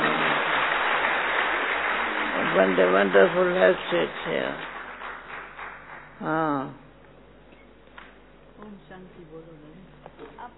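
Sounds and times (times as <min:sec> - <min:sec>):
crowd applauding: 0:00.0 - 0:06.3
speech: 0:02.6 - 0:04.7, 0:06.2 - 0:06.8, 0:08.6 - 0:09.8.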